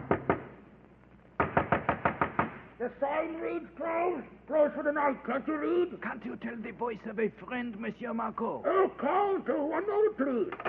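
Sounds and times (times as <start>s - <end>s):
knuckles knocking on an innkeeper's door at a port inn: 0.0s - 0.5s, 1.4s - 2.6s
speech: 2.8s - 10.6s.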